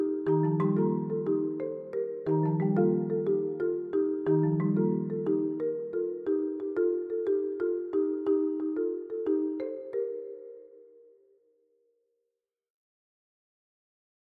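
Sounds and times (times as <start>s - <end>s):
happy marimba music: 0.0s - 11.2s.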